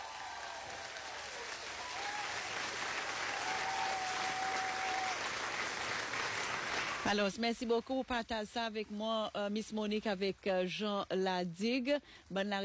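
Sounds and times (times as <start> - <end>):
crowd applause: 0.0 - 7.1
speech: 7.1 - 12.6.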